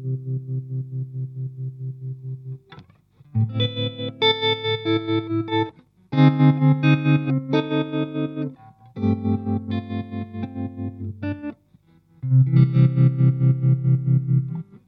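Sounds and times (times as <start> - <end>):
clean Stratocaster electric guitar on neck pickup: 0.0 - 14.8.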